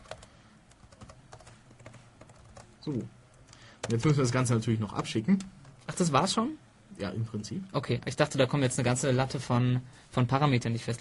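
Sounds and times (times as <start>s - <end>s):
typing a message on a computer keyboard: 0.0s - 6.0s
speech: 2.8s - 3.2s, 3.9s - 10.9s.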